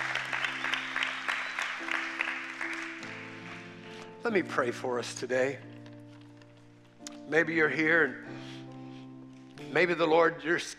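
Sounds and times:
audience hand clapping: 0:00.0 - 0:04.1
sustained organ chord droning: 0:00.0 - 0:04.5
speech: 0:04.2 - 0:05.7, 0:07.3 - 0:08.6, 0:09.7 - 0:10.7.

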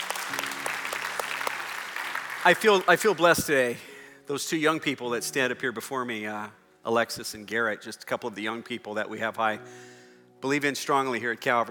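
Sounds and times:
audience applause: 0:00.0 - 0:03.5
speech: 0:02.4 - 0:11.6.

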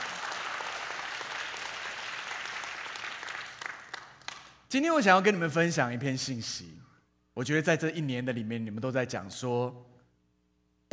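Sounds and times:
audience applause: 0:00.0 - 0:04.6
speech: 0:04.7 - 0:06.8, 0:07.4 - 0:09.9.

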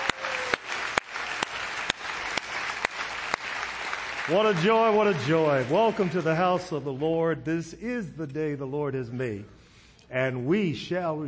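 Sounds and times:
audience clapping hands: 0:00.0 - 0:07.0
speech: 0:04.3 - 0:11.2.

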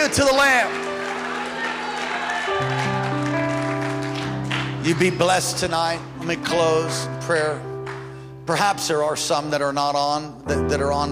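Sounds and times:
speech: 0:00.0 - 0:00.9, 0:04.9 - 0:07.7, 0:08.5 - 0:11.1
audience clapping hands: 0:00.0 - 0:06.1, 0:07.8 - 0:08.3.

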